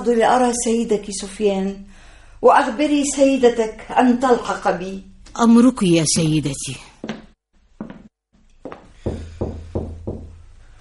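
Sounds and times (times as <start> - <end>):
speech: 0.0 - 6.9
knocking on a door: 9.0 - 10.4.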